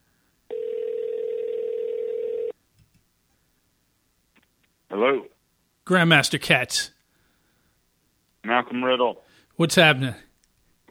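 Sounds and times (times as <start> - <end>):
telephone dial tone: 0.5 - 2.6
speech: 4.9 - 5.3, 5.9 - 7.0, 8.6 - 10.3.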